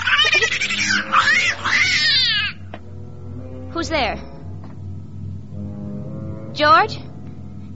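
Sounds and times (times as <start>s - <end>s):
cat yowling: 0.0s - 2.7s
speech: 3.8s - 4.3s, 6.6s - 7.0s.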